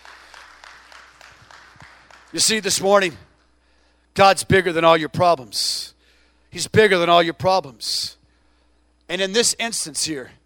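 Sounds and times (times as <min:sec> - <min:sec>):
crowd rhythmic hand clapping: 0:00.0 - 0:03.4
speech: 0:02.3 - 0:03.3, 0:04.2 - 0:05.9, 0:06.5 - 0:08.2, 0:09.1 - 0:10.4.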